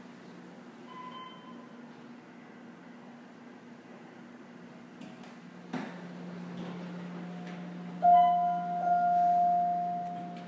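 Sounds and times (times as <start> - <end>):
elevator: 5.9 - 10.4.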